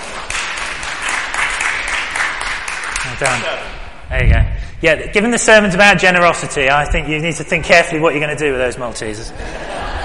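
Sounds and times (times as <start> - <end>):
round of applause: 0.0 - 3.6
speech: 3.2 - 9.9
laughter: 9.3 - 10.0.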